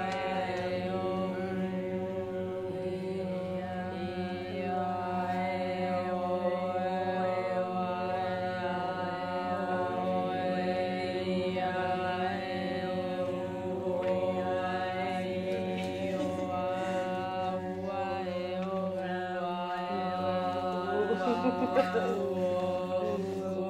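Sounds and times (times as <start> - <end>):
choir singing at a meeting: 0.0 - 23.6
laughter: 15.8 - 17.2, 20.6 - 23.4.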